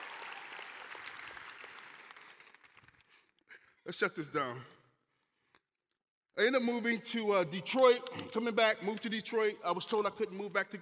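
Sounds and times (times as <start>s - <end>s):
crowd clapping: 0.0s - 3.3s
speech: 3.9s - 4.8s, 6.4s - 10.7s.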